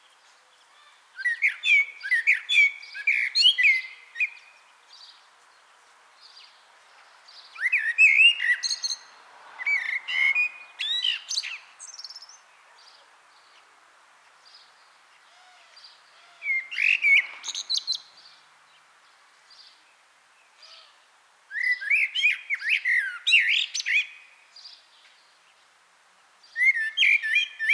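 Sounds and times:
common blackbird singing: 0.6s - 5.2s, 7.3s - 13.6s, 15.3s - 18.4s, 20.6s - 24.9s, 26.5s - 27.7s.

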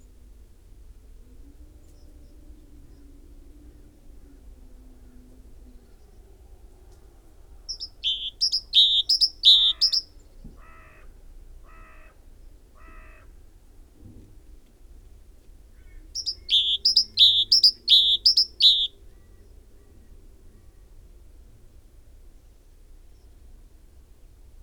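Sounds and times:
great tit singing: 7.7s - 10.1s, 16.2s - 19.0s.

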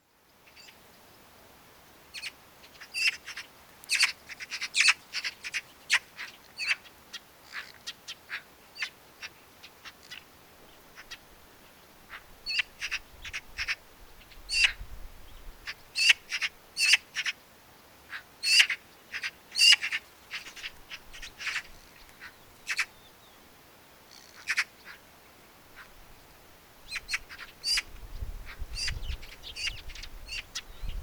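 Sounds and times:
Pica pica: 2.2s - 10.3s, 12.1s - 14.8s, 15.6s - 17.4s, 18.1s - 23.0s, 24.1s - 25.1s, 26.9s - 30.9s.

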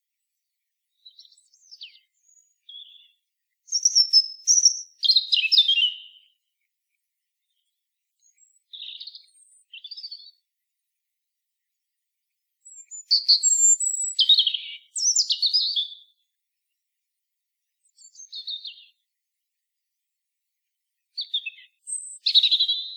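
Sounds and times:
European robin singing: 0.9s - 6.6s, 7.4s - 10.4s, 12.6s - 16.3s, 17.8s - 19.0s, 21.1s - 22.9s.

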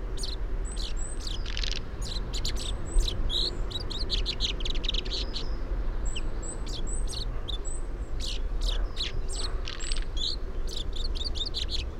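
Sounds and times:
common chaffinch Fringilla coelebs calls: 0.1s - 11.9s.

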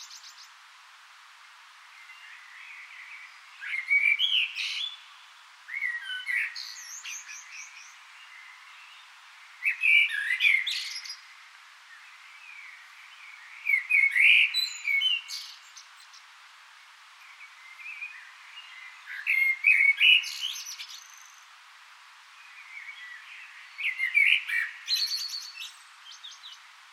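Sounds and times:
common blackbird singing: 2.1s - 5.1s, 5.7s - 11.3s, 12.4s - 16.2s, 17.4s - 21.4s, 22.5s - 26.6s.

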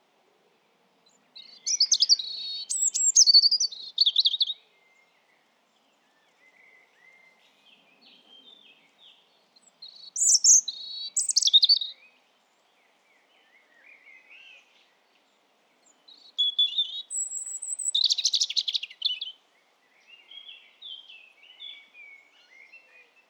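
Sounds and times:
European robin song: 1.1s - 5.2s, 6.5s - 12.1s, 15.8s - 23.2s.

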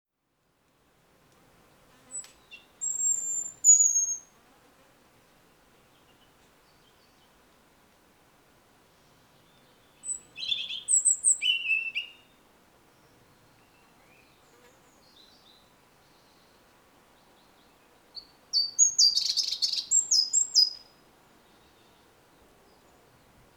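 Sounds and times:
European robin song: 2.1s - 4.3s, 8.9s - 23.5s.

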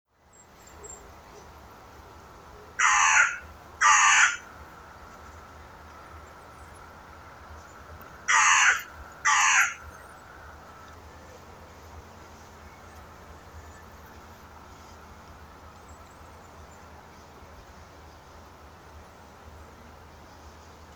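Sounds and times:
carrion crow Corvus corone cawing: 2.8s - 4.5s, 8.3s - 9.9s.

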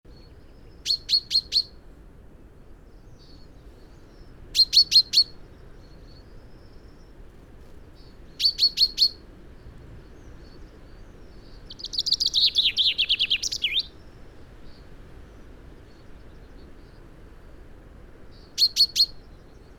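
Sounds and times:
common chaffinch Fringilla coelebs calling: 0.7s - 1.8s, 4.6s - 5.4s, 8.0s - 9.3s, 10.1s - 14.8s, 18.4s - 19.3s.

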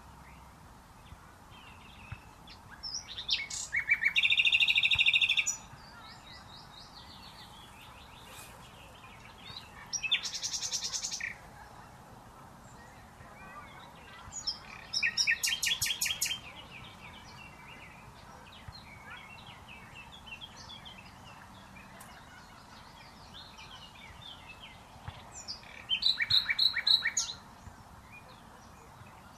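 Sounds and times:
common nightingale singing: 1.7s - 11.4s, 12.8s - 21.2s, 22.2s - 27.5s.

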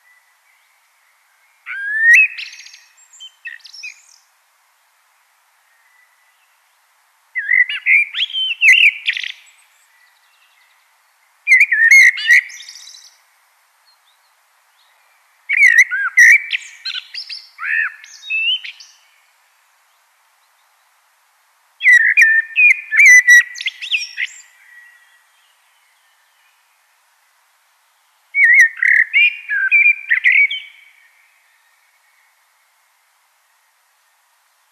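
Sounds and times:
common blackbird singing: 1.6s - 4.2s, 7.4s - 10.8s, 11.5s - 13.2s, 14.0s - 19.2s, 21.8s - 26.5s, 28.4s - 31.8s.

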